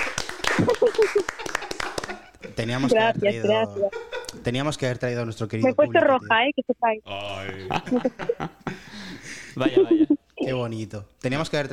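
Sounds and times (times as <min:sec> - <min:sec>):
applause: 0:00.0 - 0:02.2
laughter: 0:00.4 - 0:04.4, 0:07.4 - 0:10.2
speech: 0:00.9 - 0:01.6, 0:02.6 - 0:09.0, 0:09.6 - 0:11.7.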